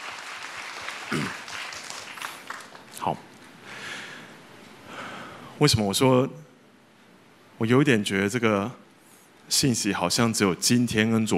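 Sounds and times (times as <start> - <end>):
audience clapping hands: 0.0 - 3.2
speech: 1.1 - 1.4, 3.0 - 3.3, 5.6 - 6.5, 7.6 - 8.8, 9.5 - 11.3.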